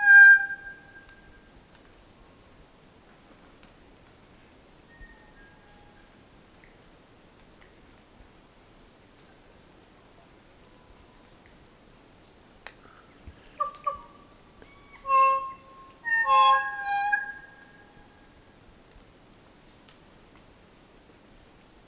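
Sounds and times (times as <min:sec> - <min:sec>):
kokako singing: 0:14.7 - 0:17.6.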